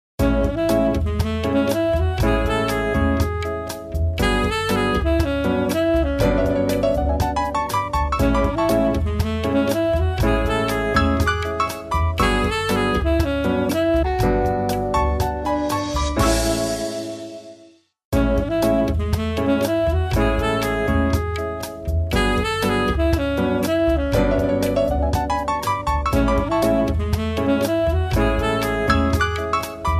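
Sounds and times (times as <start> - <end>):
elevator music: 0.2 - 17.6, 18.2 - 29.9.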